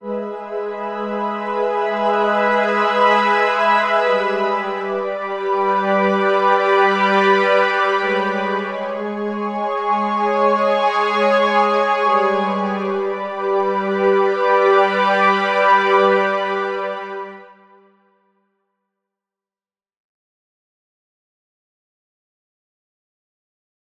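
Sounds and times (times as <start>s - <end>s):
VSM IV Expander synthesizer strings: 0.0s - 17.5s.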